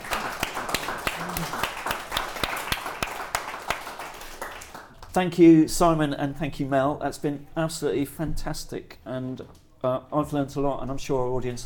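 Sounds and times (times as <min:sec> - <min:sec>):
sharp evenly spaced claps: 0:00.0 - 0:05.2
speech: 0:05.2 - 0:11.6.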